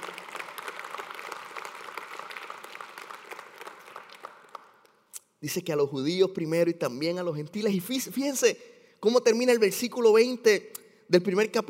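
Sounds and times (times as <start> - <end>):
audience applause: 0.0 - 4.8
speech: 5.4 - 11.6.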